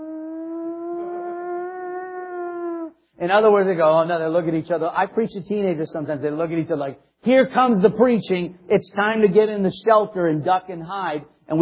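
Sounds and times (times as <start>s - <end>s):
voice imitating a whining air-raid siren: 0.0s - 3.0s
speech: 3.2s - 11.6s.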